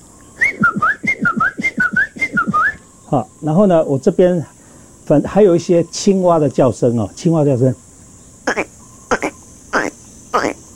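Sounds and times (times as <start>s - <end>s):
person whistling imitation of Chinese bamboo partridge call: 0.4s - 2.8s
speech: 3.1s - 4.5s, 5.1s - 7.8s.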